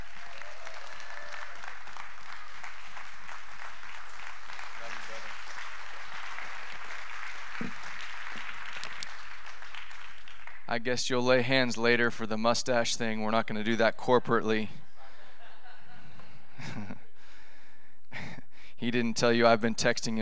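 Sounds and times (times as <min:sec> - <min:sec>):
audience applause welcoming a guest speaker: 0:00.0 - 0:10.7
speech: 0:10.7 - 0:14.8, 0:18.9 - 0:20.2
laughter: 0:14.8 - 0:17.1.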